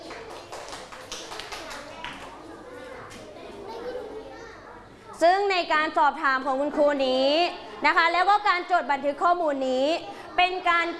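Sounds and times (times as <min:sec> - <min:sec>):
children clapping hands: 0:00.0 - 0:02.4
speech: 0:05.2 - 0:10.9.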